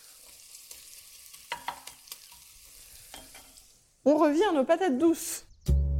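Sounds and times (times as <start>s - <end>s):
onions sizzling in duck fat: 0.0s - 4.5s
speech: 4.0s - 5.8s.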